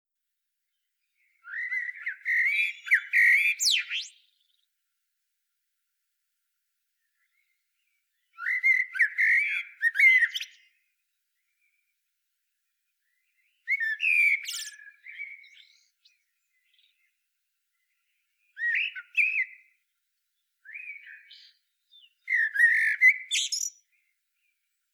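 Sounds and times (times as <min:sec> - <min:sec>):
Eurasian blackbird song: 0:01.1 - 0:04.6, 0:07.1 - 0:10.8, 0:13.0 - 0:17.1, 0:17.8 - 0:19.8, 0:20.6 - 0:24.5.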